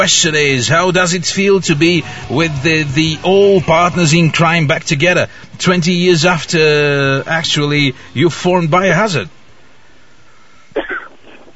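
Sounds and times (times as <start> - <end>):
speech: 0.0 - 9.4
sick interviewee coughing: 10.8 - 11.5.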